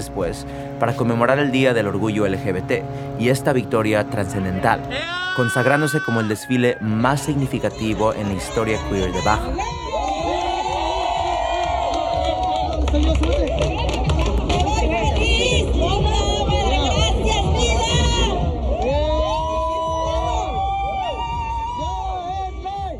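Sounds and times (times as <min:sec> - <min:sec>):
speech: 0:00.1 - 0:10.0, 0:12.9 - 0:14.0
crowd shouting: 0:04.9 - 0:22.9.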